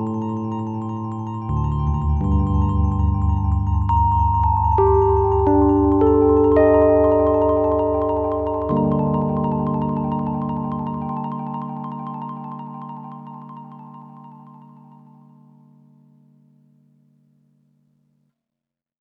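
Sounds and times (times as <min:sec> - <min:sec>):
melancholic minimalist electro jazz: 0:00.0 - 0:14.9.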